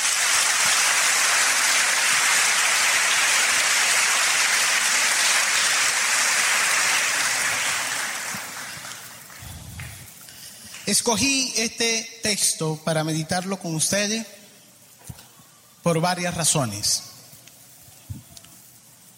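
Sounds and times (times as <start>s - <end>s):
crowd applauding: 0.0s - 11.1s
speech: 10.9s - 14.4s, 15.9s - 17.1s.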